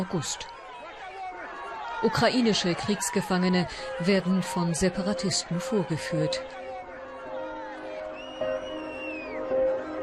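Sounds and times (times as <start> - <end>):
speech: 0.0 - 0.6, 2.0 - 6.6
crowd shouting and jeering at prisoners: 0.0 - 10.0
high whistle-like tone: 8.1 - 9.7.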